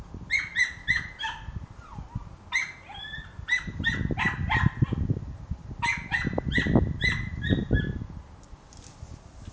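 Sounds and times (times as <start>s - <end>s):
dog giving short high whining yips: 0.3s - 4.9s, 5.9s - 8.0s.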